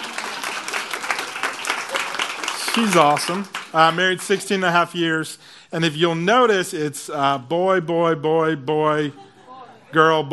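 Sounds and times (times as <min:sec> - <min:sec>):
audience clapping for a guest seated among them: 0:00.0 - 0:04.8
speech: 0:02.8 - 0:09.3, 0:09.9 - 0:10.3.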